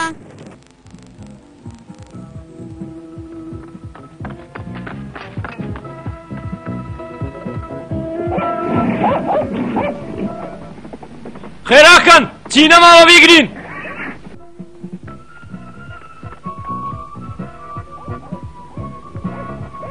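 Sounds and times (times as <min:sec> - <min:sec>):
dog barking in a Kurdish-dubbed cartoon series: 0:08.3 - 0:10.1
speech: 0:11.7 - 0:13.6.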